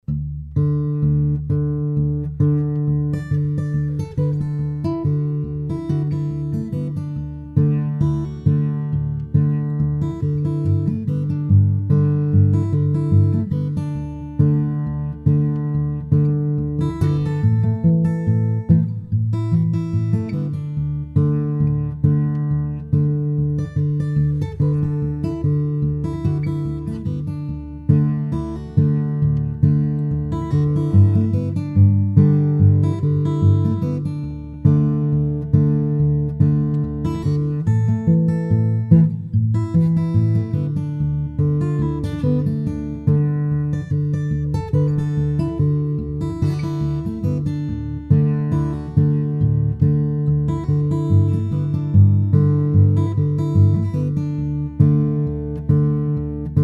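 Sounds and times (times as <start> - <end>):
blues roots fingerstyle guitar tunes: 0.0 - 56.6.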